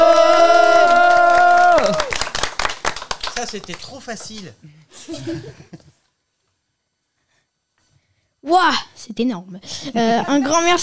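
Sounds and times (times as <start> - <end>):
people exclaiming oh: 0.0 - 2.1
people applauding: 0.0 - 4.6
speech: 3.5 - 5.8, 8.4 - 10.8.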